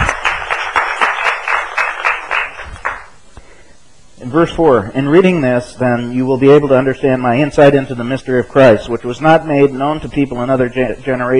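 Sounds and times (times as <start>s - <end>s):
audience round of applause: 0.0s - 3.1s
speech: 4.4s - 11.3s.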